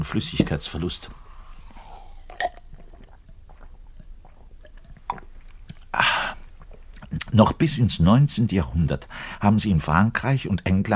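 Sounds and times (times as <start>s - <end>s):
speech: 0.0s - 1.2s, 7.4s - 10.9s
hiss: 0.0s - 10.9s
man gulping beer: 1.1s - 7.2s
burp: 2.1s - 2.7s.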